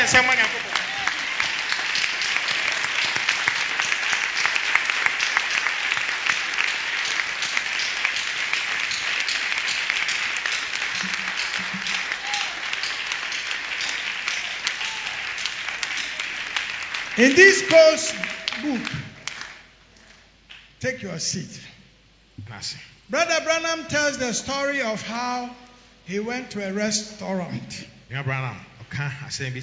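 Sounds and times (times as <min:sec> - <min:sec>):
church congregation hand clapping: 0:00.0 - 0:20.8
speech: 0:00.1 - 0:00.6, 0:17.2 - 0:19.0, 0:20.8 - 0:21.6, 0:22.6 - 0:29.6.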